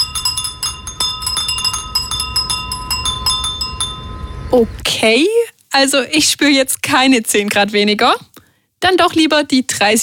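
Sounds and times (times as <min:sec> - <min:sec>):
Japanese furin wind chimes tinkling: 0:00.0 - 0:04.8
soft low rumble: 0:00.0 - 0:05.0
speech: 0:04.5 - 0:10.0.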